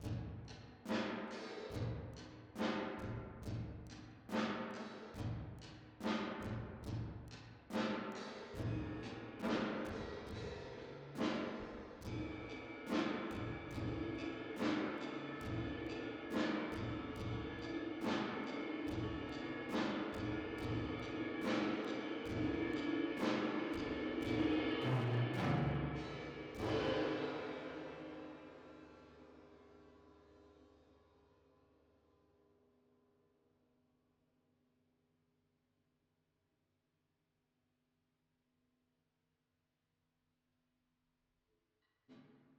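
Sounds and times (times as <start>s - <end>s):
drums with reverb: 0.0s - 29.4s.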